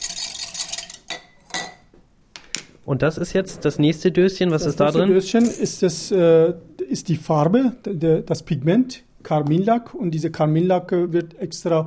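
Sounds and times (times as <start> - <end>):
whisk stirring paste thickener into water: 0.0 - 1.1
speech: 2.9 - 11.8.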